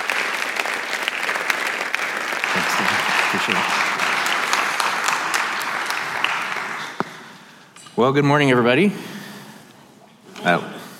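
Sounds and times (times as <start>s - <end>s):
chapel audience clapping to welcome a guest speaker: 0.0s - 7.6s
speech: 8.0s - 9.1s, 10.4s - 10.8s.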